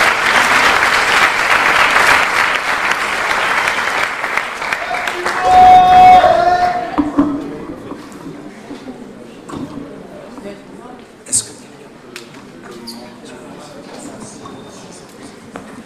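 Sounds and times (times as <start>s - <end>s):
crowd clapping: 0.0s - 7.0s
crowd voices: 4.6s - 15.8s
cheer or whistle: 4.8s - 6.9s.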